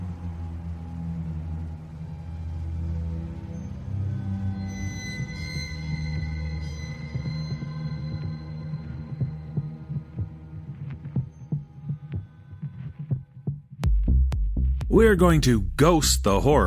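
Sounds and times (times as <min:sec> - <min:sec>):
droning hum: 0:00.0 - 0:12.6
heartbeat thudding: 0:08.1 - 0:15.8
speech: 0:14.9 - 0:16.6.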